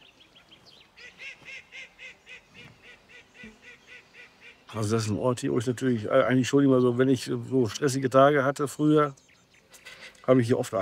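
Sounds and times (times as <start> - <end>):
ducks quacking at a farm pond: 1.0 - 5.1
speech: 4.7 - 9.2, 10.3 - 10.8.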